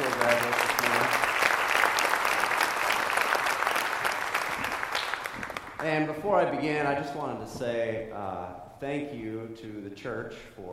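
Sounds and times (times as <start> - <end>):
church audience applause for graduates: 0.0 - 6.1
speech: 5.8 - 10.7.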